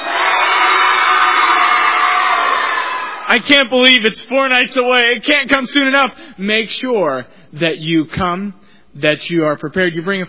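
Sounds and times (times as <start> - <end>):
children cheering: 0.0 - 3.2
speech: 3.3 - 10.2.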